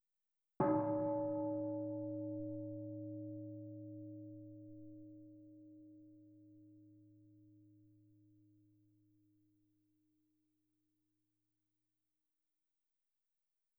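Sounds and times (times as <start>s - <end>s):
bell: 0.6s - 8.3s.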